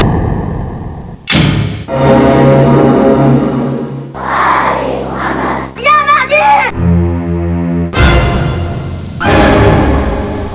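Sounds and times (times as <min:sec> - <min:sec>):
music: 0:01.4 - 0:10.5.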